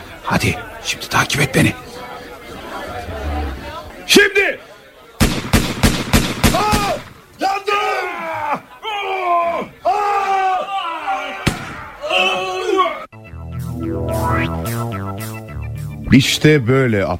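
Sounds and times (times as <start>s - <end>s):
speech: 0.3s - 1.9s, 4.1s - 4.7s, 16.2s - 17.1s
gunfire from guns in an audio drama: 5.2s - 7.2s, 11.4s - 11.8s
people screaming: 6.5s - 7.0s, 7.6s - 13.1s
music: 13.1s - 16.6s.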